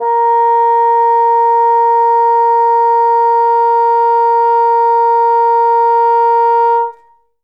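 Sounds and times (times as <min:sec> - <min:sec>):
bassoon note A sharp 2: 0:00.0 - 0:07.2.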